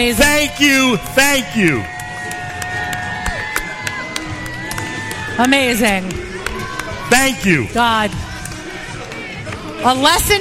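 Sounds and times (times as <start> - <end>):
speech: 0.0 - 2.0, 5.4 - 6.2, 7.1 - 8.3, 9.8 - 10.4
crowd cheering: 0.0 - 9.7
crowd applause: 0.2 - 7.6.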